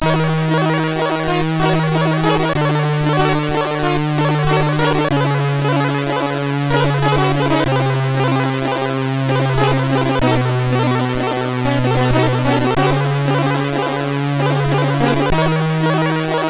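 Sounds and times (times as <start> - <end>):
melancholy MOS6581R3 chip music: 0.0 - 16.4.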